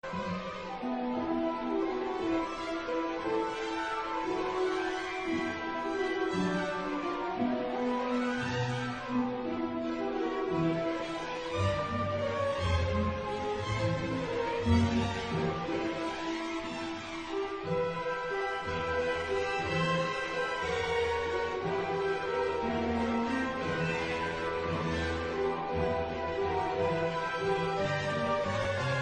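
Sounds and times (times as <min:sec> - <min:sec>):
piano: 0:00.0 - 0:29.0.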